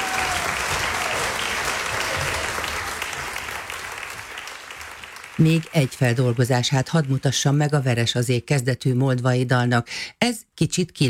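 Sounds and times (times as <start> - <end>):
audience applause: 0.0 - 7.7
speech: 5.4 - 11.0.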